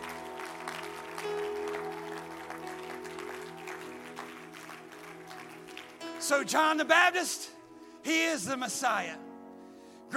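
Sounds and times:
audience clapping: 0.0 - 6.9
speech: 6.3 - 9.3.

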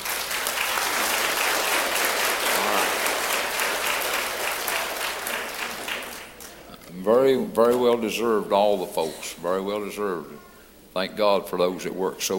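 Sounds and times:
audience applause: 0.0 - 6.6
speech: 7.1 - 12.3.

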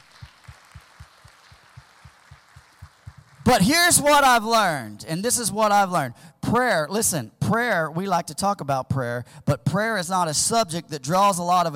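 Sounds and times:
audience clapping hands in praise: 0.0 - 4.0
speech: 3.4 - 11.7.

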